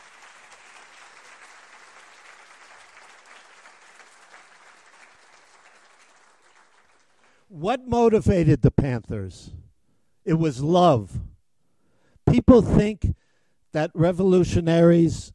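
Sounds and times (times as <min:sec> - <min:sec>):
audience applauding: 0:00.0 - 0:07.5
speech: 0:07.5 - 0:09.6, 0:10.3 - 0:11.3, 0:12.4 - 0:15.3.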